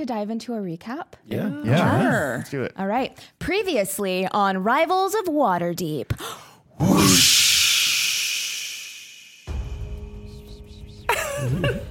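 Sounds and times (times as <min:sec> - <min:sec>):
speech: 0:00.0 - 0:07.6
whooshing wind sound effect: 0:06.8 - 0:09.8.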